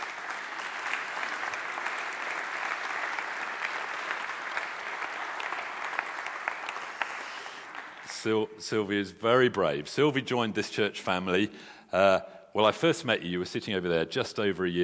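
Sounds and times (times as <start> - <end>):
audience applauding: 0.0 - 8.5
speech: 8.2 - 14.8.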